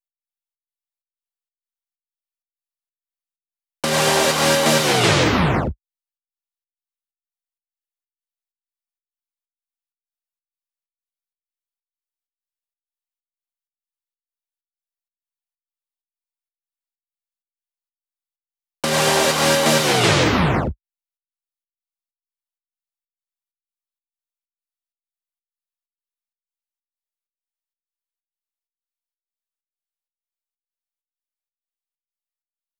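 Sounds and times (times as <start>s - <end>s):
128 BPM synth chords fill: 3.8s - 5.7s, 18.8s - 20.7s.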